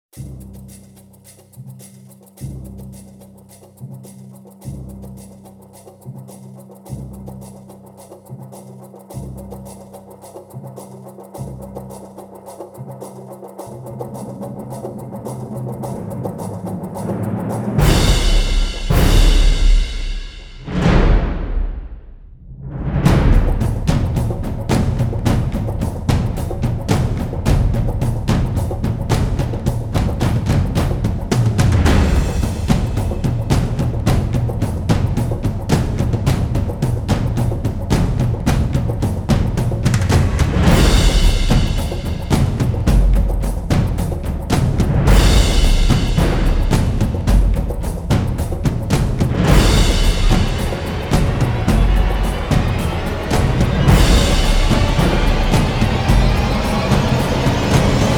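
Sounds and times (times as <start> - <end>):
drums building: 15.4 - 58.1.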